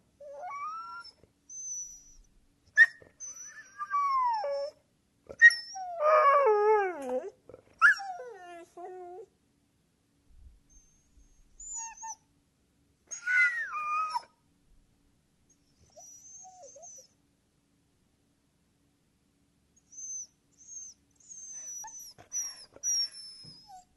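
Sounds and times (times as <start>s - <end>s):
dog whining: 0.2s - 9.3s, 10.7s - 12.2s, 13.1s - 14.3s, 15.7s - 17.1s, 19.8s - 23.9s.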